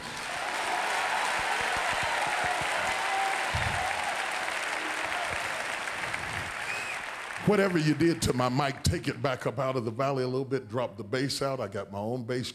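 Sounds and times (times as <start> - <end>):
audience clapping hands in praise: 0.0 - 9.2
speech: 7.5 - 12.5.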